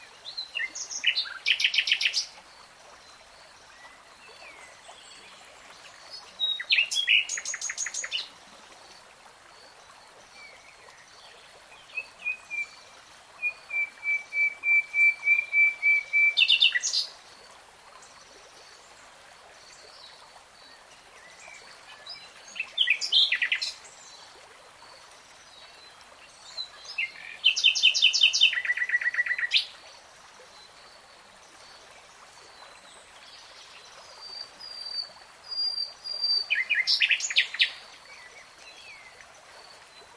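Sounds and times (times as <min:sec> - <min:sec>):
nightingale song: 0:00.2 - 0:02.4, 0:03.8 - 0:08.3, 0:11.7 - 0:17.2, 0:21.2 - 0:23.9, 0:26.6 - 0:29.8, 0:32.6 - 0:39.3.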